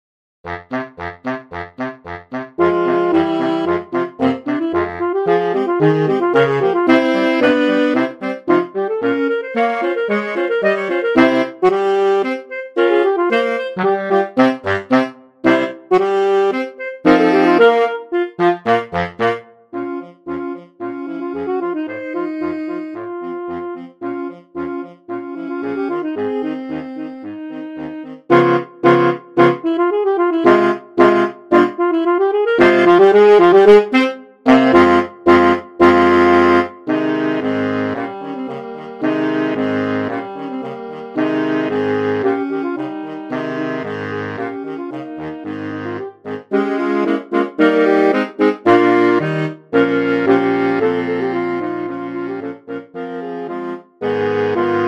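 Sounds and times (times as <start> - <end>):
saxophone quartet playing a dance: 0.5 - 54.8.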